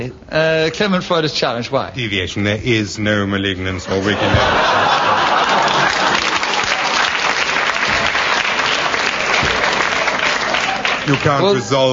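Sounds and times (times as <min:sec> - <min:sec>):
speech: 0:00.0 - 0:05.8, 0:11.1 - 0:11.9
laughter: 0:03.8 - 0:07.2
studio audience applauding: 0:04.5 - 0:11.9.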